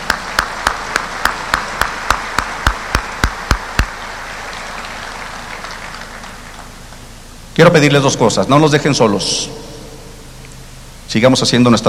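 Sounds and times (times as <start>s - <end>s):
audience clapping in unison: 0.0s - 7.2s
crowd noise: 0.0s - 7.5s
speech: 7.6s - 9.6s, 11.1s - 11.8s.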